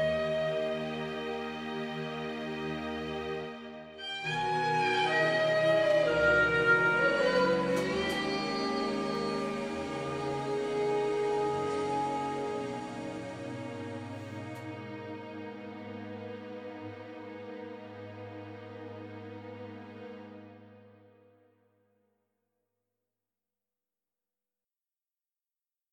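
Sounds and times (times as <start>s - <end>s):
horn tune in G minor: 0.0s - 2.4s, 4.0s - 15.5s.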